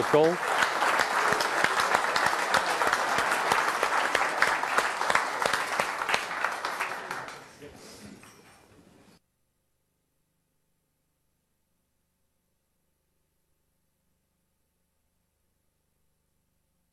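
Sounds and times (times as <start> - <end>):
audience clapping at a council meeting: 0.0 - 7.8.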